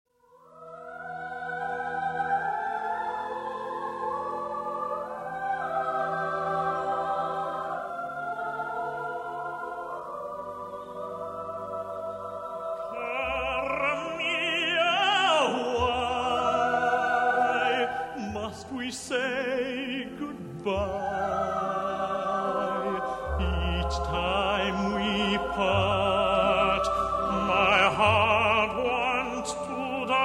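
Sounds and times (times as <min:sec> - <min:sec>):
choir singing: 0:00.3 - 0:30.2.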